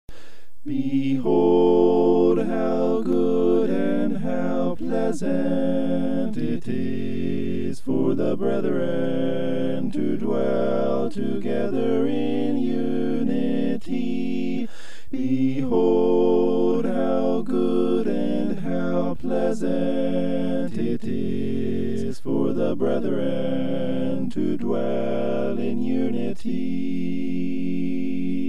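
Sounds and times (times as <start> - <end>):
a cappella scripture song: 0.5 - 28.4.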